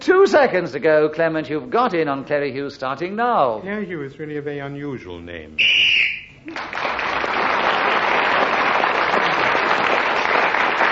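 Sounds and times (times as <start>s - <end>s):
speech: 0.0s - 5.7s, 6.4s - 7.7s
referee's whistle blast: 5.6s - 6.4s
applause: 6.5s - 10.8s.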